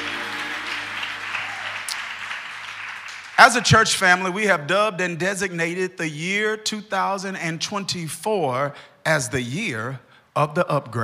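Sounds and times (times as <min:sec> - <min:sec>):
audience clapping hands: 0:00.0 - 0:04.3
speech: 0:03.4 - 0:11.0.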